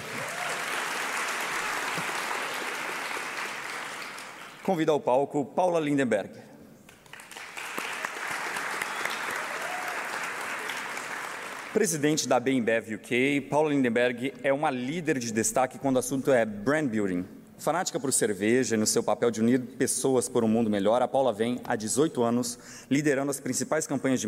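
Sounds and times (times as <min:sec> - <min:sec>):
sustained audience applause: 0:00.0 - 0:04.7, 0:07.0 - 0:11.8
speech: 0:04.7 - 0:06.5, 0:11.8 - 0:24.2.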